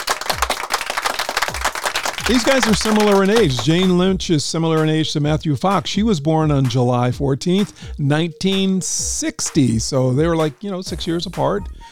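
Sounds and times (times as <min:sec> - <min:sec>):
round of applause: 0:00.0 - 0:03.9
speech: 0:02.3 - 0:11.9.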